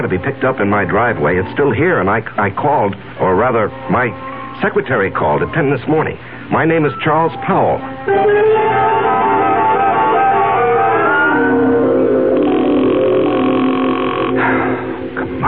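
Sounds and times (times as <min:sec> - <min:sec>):
speech: 0:00.0 - 0:09.0
telephone ringing: 0:09.7 - 0:15.3.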